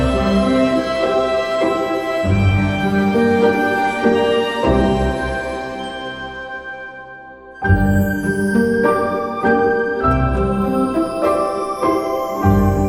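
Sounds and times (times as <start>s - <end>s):
magical medieval fantasy atmospheric background music: 0.0s - 12.8s.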